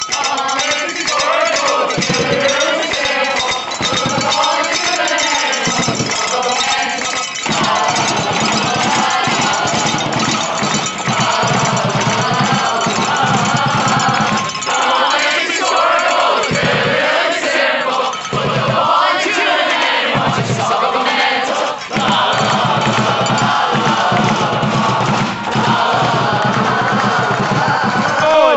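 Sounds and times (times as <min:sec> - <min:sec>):
football crowd chanting: 0:00.0 - 0:28.5.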